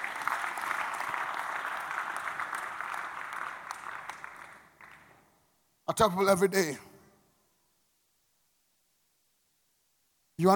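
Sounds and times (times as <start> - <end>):
audience clapping hands: 0.0 - 5.4
speech: 5.9 - 6.9, 10.4 - 10.5.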